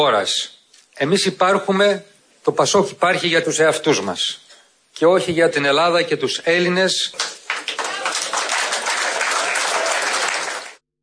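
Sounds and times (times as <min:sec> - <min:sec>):
speech: 0:00.0 - 0:04.4, 0:05.0 - 0:07.4
audience applause: 0:07.2 - 0:10.8.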